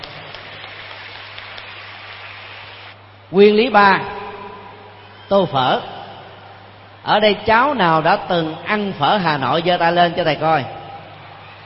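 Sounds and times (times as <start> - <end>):
children applauding: 0.0 - 3.0, 11.1 - 11.6
speech: 3.3 - 4.2, 5.3 - 6.0, 7.0 - 10.8.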